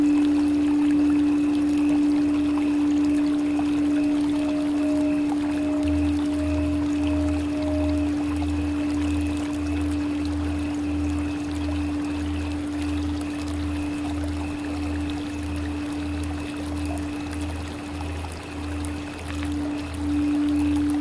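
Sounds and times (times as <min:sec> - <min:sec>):
Tibetan singing bowls: 0:00.0 - 0:20.9
flowing water: 0:00.0 - 0:20.9.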